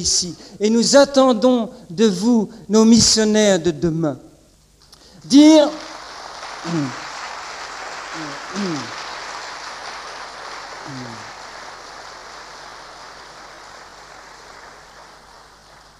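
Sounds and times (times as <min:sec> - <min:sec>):
speech: 0:00.0 - 0:04.3, 0:05.3 - 0:05.9, 0:06.6 - 0:07.0
audience applauding: 0:05.3 - 0:15.9
low vocal sounds: 0:06.7 - 0:07.0, 0:08.2 - 0:09.0, 0:10.8 - 0:11.3.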